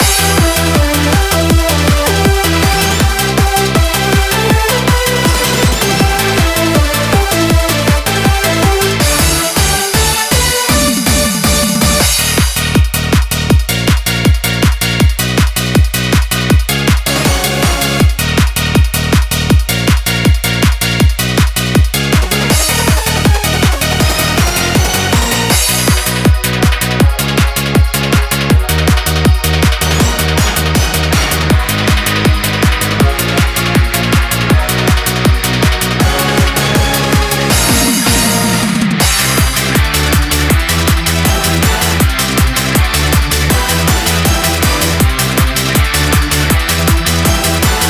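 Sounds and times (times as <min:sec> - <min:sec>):
instrumental music: 0:00.0 - 0:47.8.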